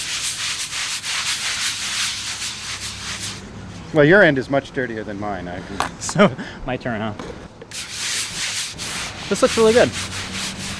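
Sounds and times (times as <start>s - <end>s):
stone scrubbing against brick: 0.0s - 3.4s, 7.7s - 10.7s
speech: 3.9s - 7.4s, 9.3s - 10.2s.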